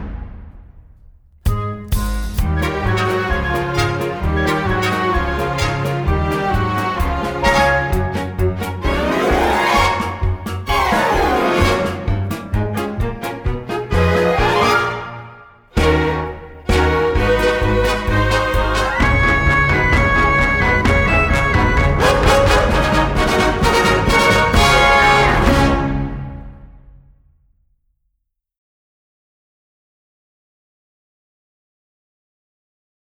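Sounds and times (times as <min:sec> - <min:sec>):
audition cut accompaniment music: 0:01.3 - 0:26.4.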